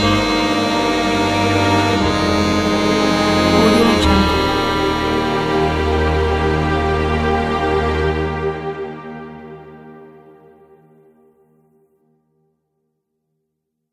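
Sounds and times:
accordion: 0.0s - 10.3s
strings: 0.0s - 11.2s.

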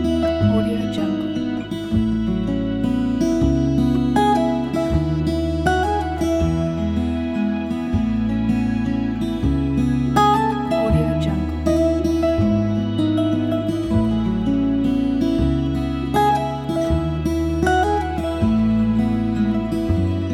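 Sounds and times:
sentimental acoustic ballad: 0.0s - 20.3s.

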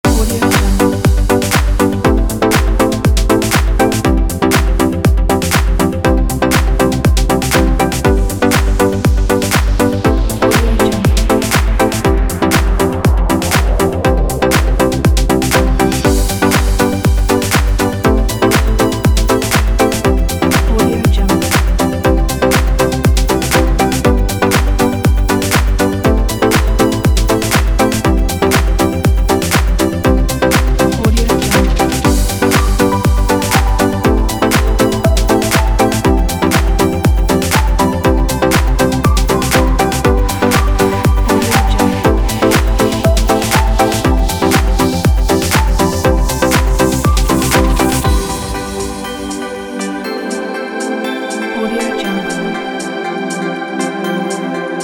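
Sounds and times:
tropical trance music: 0.0s - 54.8s.

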